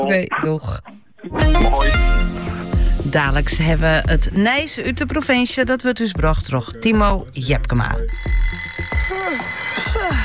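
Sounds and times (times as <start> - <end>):
speech: 0.0 - 2.0, 3.0 - 8.6
alarm clock ringing with warbling chirping electronic tones: 8.1 - 10.2.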